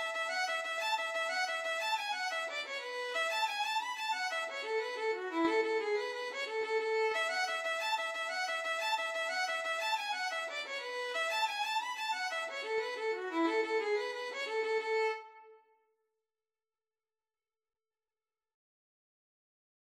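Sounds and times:
violin playing Irish jig medley: 0:00.0 - 0:15.6.

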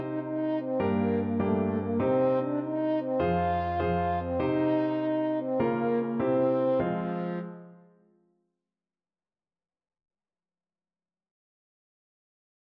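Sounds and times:
French horn: 0:00.0 - 0:07.9.

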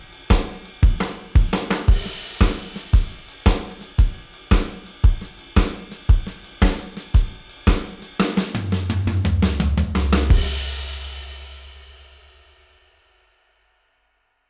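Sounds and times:
drums playing shuffle groove: 0:00.0 - 0:12.3.

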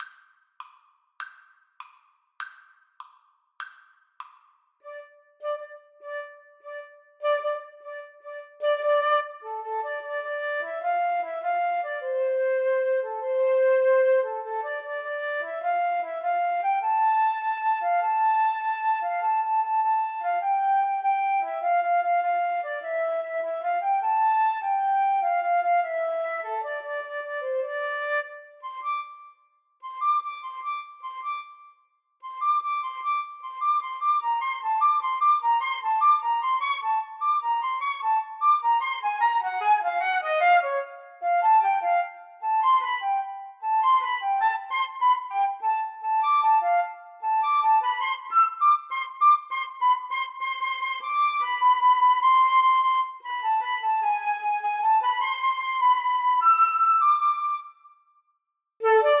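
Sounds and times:
flute and clarinet duet: 0:04.9 - 0:57.9, 0:58.8 - 0:59.1.

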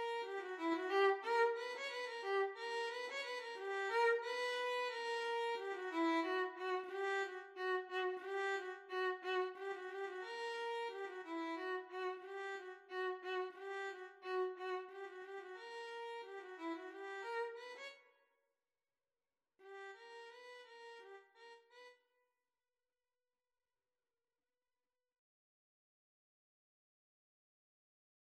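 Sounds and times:
violin and cello duet playing a folk dance: 0:00.0 - 0:17.6.

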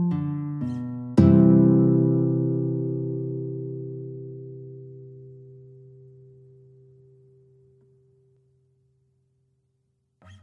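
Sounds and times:
guitar ensemble playing: 0:00.0 - 0:06.0.

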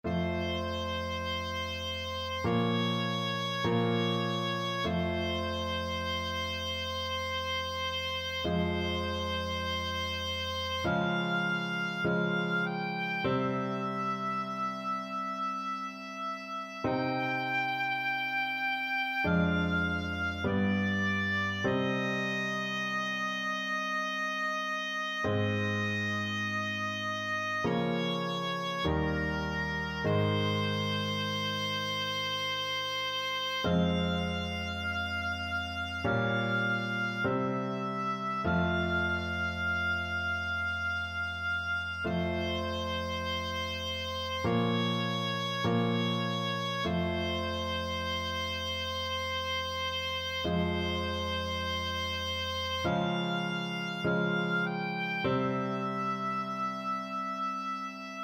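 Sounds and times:
oboe: 0:00.0 - 0:58.2.

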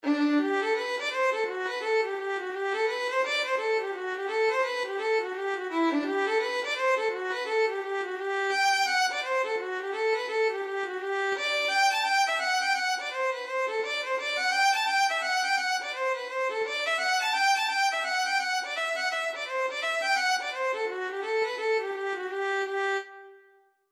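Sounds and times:
violin: 0:00.0 - 0:23.6.

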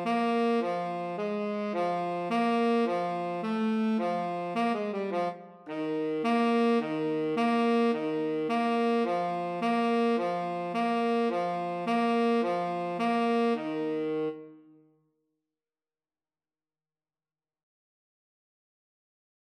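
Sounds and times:
alto and tenor saxophone duet: 0:00.0 - 0:14.7.

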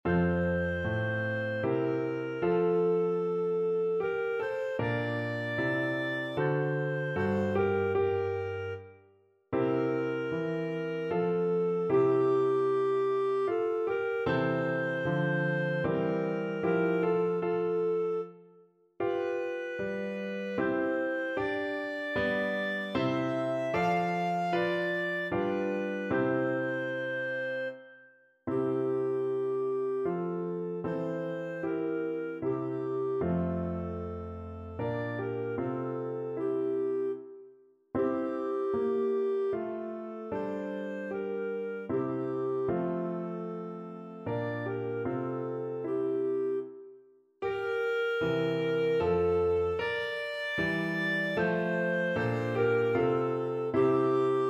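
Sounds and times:
clarinet: 0:00.0 - 0:54.4.

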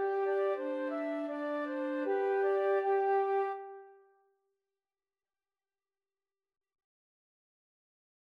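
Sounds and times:
flute trio playing: 0:00.0 - 0:03.9.

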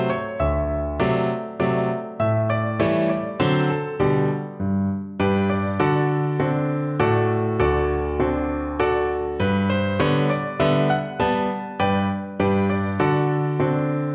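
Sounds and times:
piano waltz: 0:00.0 - 0:14.1.

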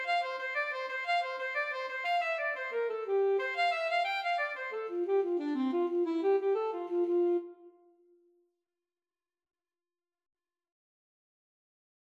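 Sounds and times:
saxophone playing an Irish jig medley: 0:00.0 - 0:08.1
clarinet playing an Irish jig medley: 0:00.0 - 0:08.2.

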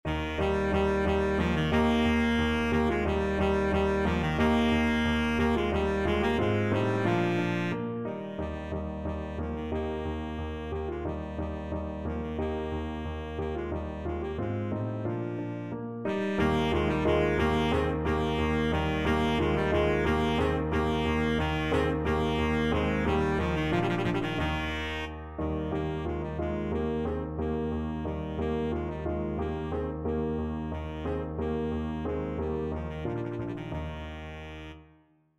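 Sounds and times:
baritone saxophone: 0:00.1 - 0:34.9.

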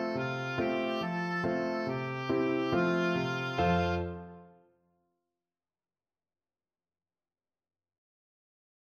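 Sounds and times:
oboe: 0:00.0 - 0:04.6.

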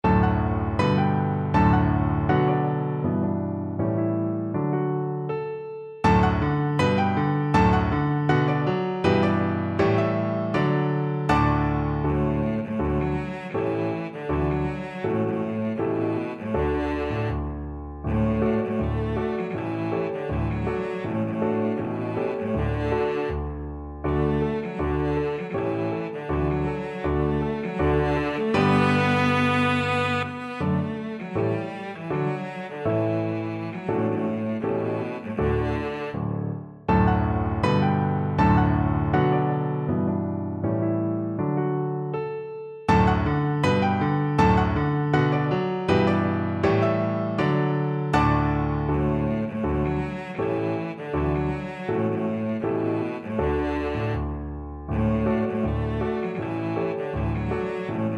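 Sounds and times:
violoncello: 0:00.0 - 0:42.2, 0:42.9 - 0:58.1.

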